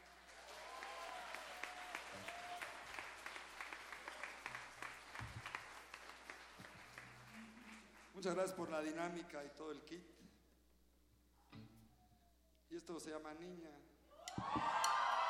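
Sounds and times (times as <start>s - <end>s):
crowd applauding: 0.0s - 8.6s, 14.3s - 15.2s
speech: 8.2s - 10.2s, 12.8s - 14.8s.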